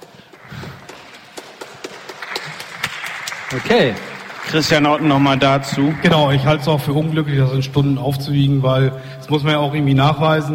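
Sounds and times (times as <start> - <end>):
small group clapping: 0.0 - 7.3
speech: 3.5 - 10.5.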